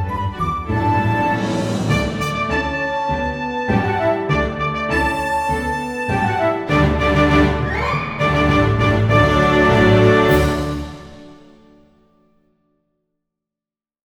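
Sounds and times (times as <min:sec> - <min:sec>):
drum kit march backing: 0:00.2 - 0:02.9, 0:03.8 - 0:11.5.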